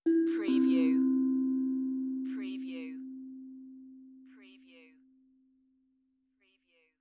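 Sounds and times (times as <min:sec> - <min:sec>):
meditative tongue drum tone: 0:00.0 - 0:05.2.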